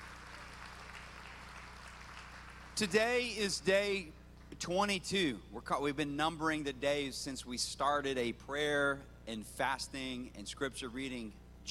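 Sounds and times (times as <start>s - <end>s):
church congregation applauding to welcome online viewers: 0.0s - 3.3s
speech: 2.8s - 11.6s.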